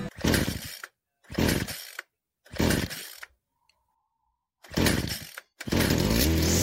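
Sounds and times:
harsh mechanical grinding like a giant garbage disposal: 0.0s - 3.3s, 4.6s - 6.6s.

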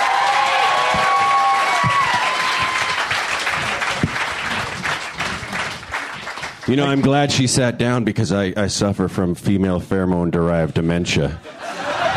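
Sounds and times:
audience whistles and cheers: 0.0s - 3.2s
audience applause: 0.0s - 7.3s
speech: 6.7s - 11.6s
laughter: 11.3s - 12.1s.

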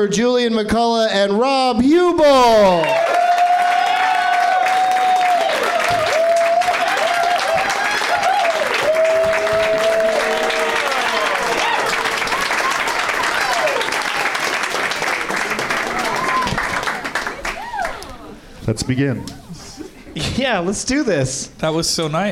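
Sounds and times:
speech: 0.0s - 3.2s, 18.7s - 19.4s, 20.2s - 22.2s
crowd clapping and cheering in standing ovation: 2.5s - 18.4s.

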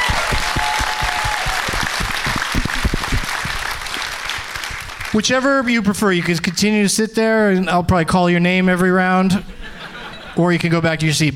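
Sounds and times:
audience applauding a game show contestant: 0.0s - 6.4s
speech: 5.2s - 9.6s, 10.4s - 11.3s
laughter: 9.4s - 10.7s.

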